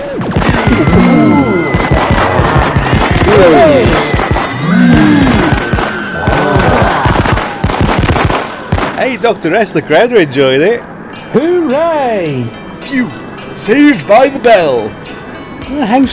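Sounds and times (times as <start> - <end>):
gingerbread cottage blowing up: 0.0 - 9.2
lasers firing from eyes: 0.2 - 9.0
speech: 9.2 - 15.0, 15.7 - 16.1.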